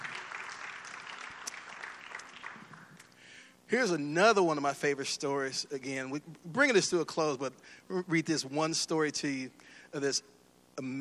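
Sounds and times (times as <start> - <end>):
audience clapping: 0.0 - 3.1
speech: 3.7 - 10.9.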